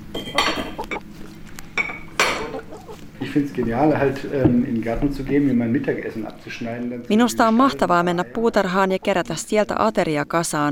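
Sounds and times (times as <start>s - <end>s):
hens clucking: 0.0s - 4.8s, 7.2s - 10.0s
low hum: 0.0s - 10.7s
dishes and cutlery clattering as they are set down: 0.1s - 1.0s, 1.7s - 2.9s
speech: 3.4s - 10.7s.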